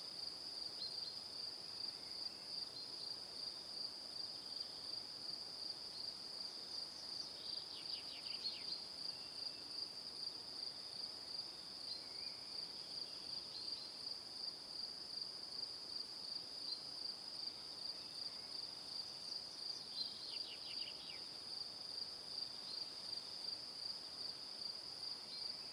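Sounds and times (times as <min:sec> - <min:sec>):
crickets chirping: 0:00.1 - 0:25.7.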